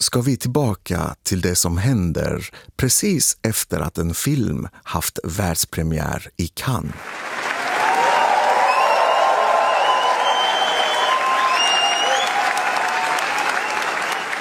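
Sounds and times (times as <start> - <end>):
speech: 0.0 - 7.5
standing ovation after a film premiere at the Cannes film festival: 7.0 - 14.4.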